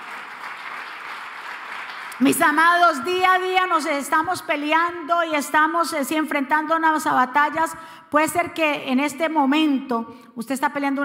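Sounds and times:
audience applause: 0.0s - 2.2s
speech: 2.2s - 11.0s.

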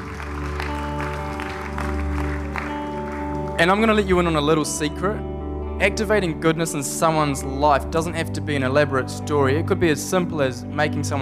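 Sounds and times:
round of applause: 0.0s - 4.2s
speech: 3.6s - 11.2s.

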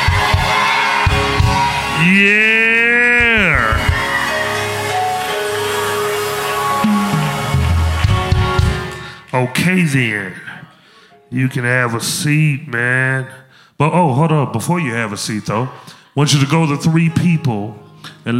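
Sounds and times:
loud sustained whoop: 0.0s - 8.1s
audience cheering and shouting: 0.0s - 9.0s
speech: 2.0s - 2.5s, 9.4s - 10.5s, 11.3s - 18.3s.

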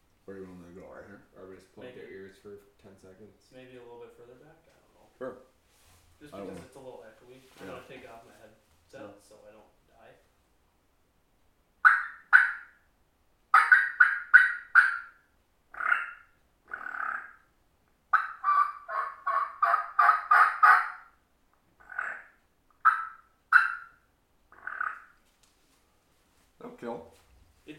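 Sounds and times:
speech: 1.3s - 5.4s, 6.2s - 10.2s
Smith turkey call gobbling: 11.8s - 12.9s, 13.5s - 17.5s, 18.1s - 21.2s, 21.8s - 25.2s.

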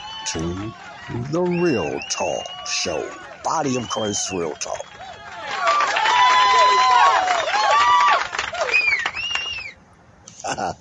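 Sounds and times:
crowd cheering and applauding: 0.0s - 9.7s
speech: 0.2s - 5.1s, 10.5s - 10.7s.

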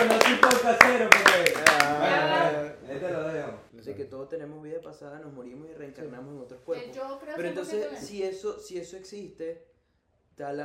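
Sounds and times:
scattered hands clapping: 0.0s - 2.2s
speech: 4.0s - 9.7s, 10.4s - 10.6s.

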